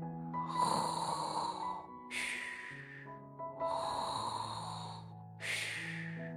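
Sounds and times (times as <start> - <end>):
cat snoring loudly: 0.5 - 2.9, 3.7 - 6.2.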